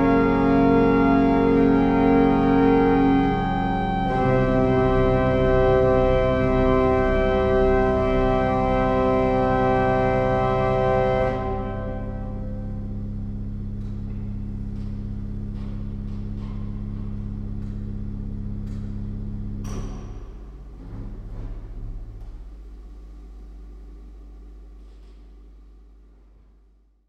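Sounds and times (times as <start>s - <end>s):
pipe organ harmonic flute and salicional stops: 0.0s - 14.2s.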